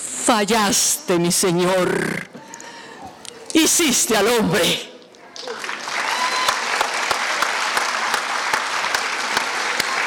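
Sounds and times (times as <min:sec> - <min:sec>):
speech: 0:00.3 - 0:02.3, 0:03.6 - 0:04.9
audience applause: 0:05.3 - 0:10.0.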